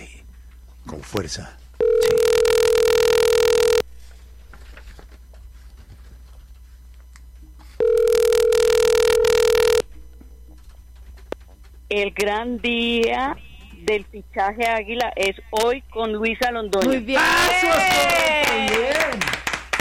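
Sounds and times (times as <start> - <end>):
speech: 0.9 - 1.6, 11.9 - 19.2
telephone line buzzing ringback tones: 1.8 - 3.9, 7.8 - 9.8.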